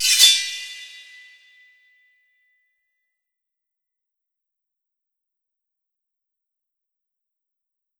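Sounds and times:
sword skill effect: 0.0s - 1.3s.

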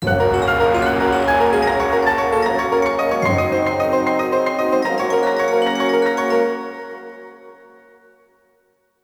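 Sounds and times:
jingle: 0.0s - 7.2s.

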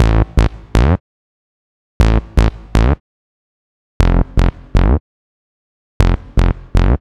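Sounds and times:
bass melody: 0.0s - 1.0s, 2.0s - 3.0s, 4.0s - 5.0s, 6.0s - 7.0s.

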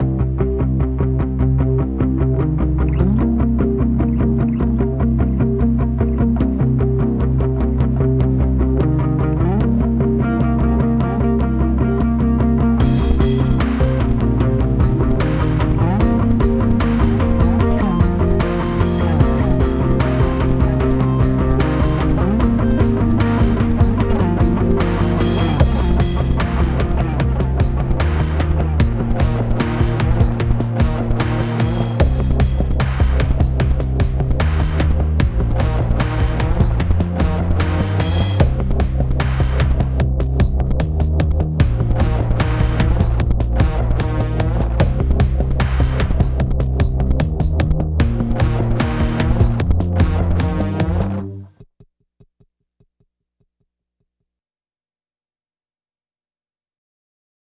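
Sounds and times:
music at 75 bpm: 0.0s - 51.6s.

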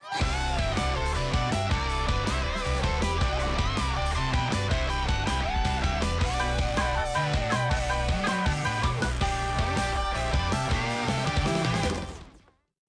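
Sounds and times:
dance music: 0.1s - 12.0s.

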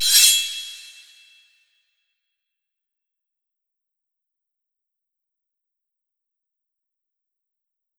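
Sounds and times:
sword skill effect: 0.0s - 1.2s.

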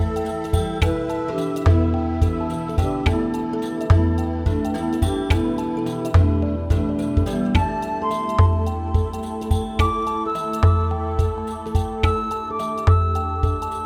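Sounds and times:
sad forest drum: 0.0s - 13.8s.

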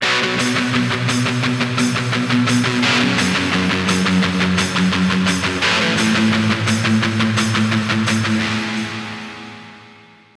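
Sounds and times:
strings in G sharp: 0.0s - 9.9s.

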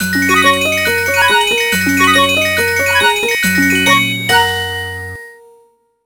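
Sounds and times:
fairy collect sound effect: 0.0s - 4.7s.

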